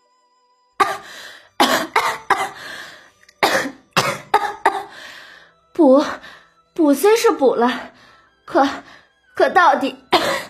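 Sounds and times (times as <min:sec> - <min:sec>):
repeated coughing: 0:00.8 - 0:02.6, 0:03.4 - 0:05.0, 0:10.1 - 0:10.4
speech: 0:06.9 - 0:07.9, 0:08.5 - 0:10.0.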